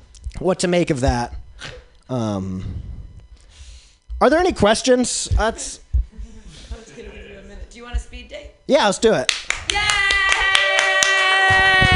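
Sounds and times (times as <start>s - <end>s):
speech: 0.4s - 2.9s, 4.2s - 5.8s, 7.8s - 9.8s
audience clapping: 9.2s - 11.9s.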